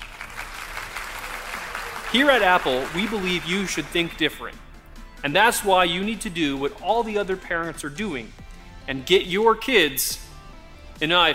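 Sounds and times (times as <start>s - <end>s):
audience clapping: 0.0s - 4.3s
speech: 2.1s - 4.6s, 5.2s - 10.2s, 11.0s - 11.3s.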